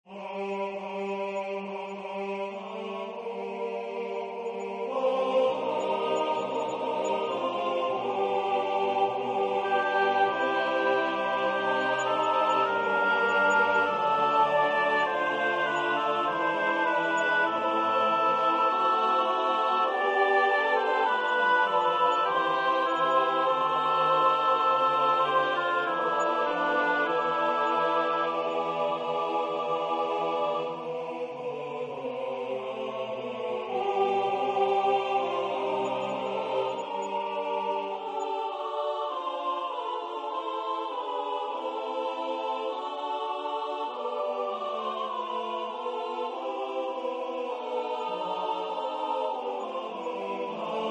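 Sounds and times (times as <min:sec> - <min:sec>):
SATB choir singing: 0:00.0 - 0:50.8.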